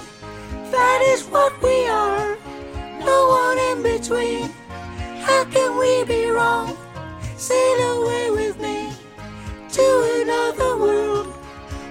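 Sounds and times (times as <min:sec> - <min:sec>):
high women's choir singing harmonies: 0:00.7 - 0:04.6, 0:05.2 - 0:06.8, 0:07.4 - 0:09.0, 0:09.7 - 0:11.4.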